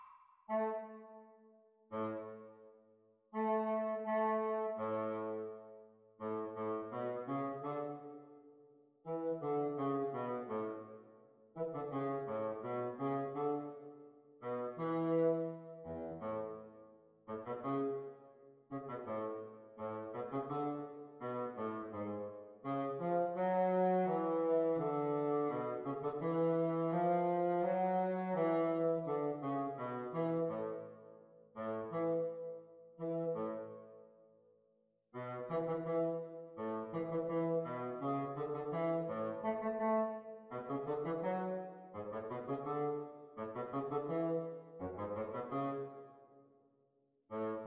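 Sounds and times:
bassoon duet: 0:00.5 - 0:01.2, 0:01.9 - 0:02.4, 0:03.3 - 0:05.5, 0:06.2 - 0:08.1, 0:09.1 - 0:10.9, 0:11.6 - 0:13.8, 0:14.5 - 0:16.6, 0:17.3 - 0:18.1, 0:18.7 - 0:31.0, 0:31.6 - 0:32.5, 0:33.0 - 0:33.8, 0:35.1 - 0:46.0, 0:47.3 - 0:47.6.

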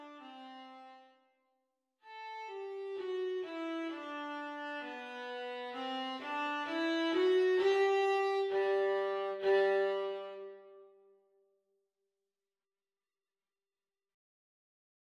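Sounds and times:
viola duet at practice speed: 0:02.1 - 0:10.9.

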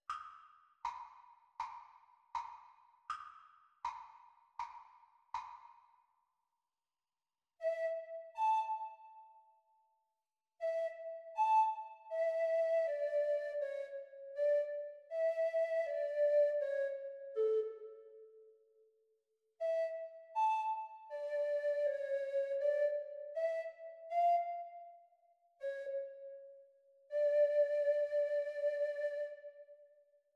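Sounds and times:
treble recorder: 0:07.6 - 0:09.4, 0:10.6 - 0:18.2, 0:19.6 - 0:29.9.

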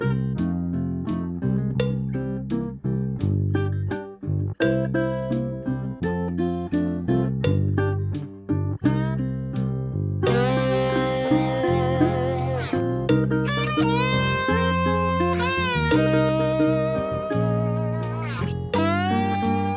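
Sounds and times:
drum kit playing along to a backing track: 0:00.4 - 0:04.1, 0:10.9 - 0:19.7
backing track music: 0:00.4 - 0:19.7.

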